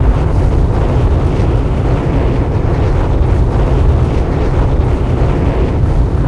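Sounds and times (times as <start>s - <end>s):
explosive objects exploding: 0.0s - 6.2s.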